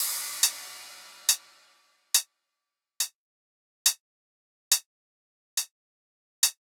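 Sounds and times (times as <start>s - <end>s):
riddim drum loop: 0.0s - 1.7s.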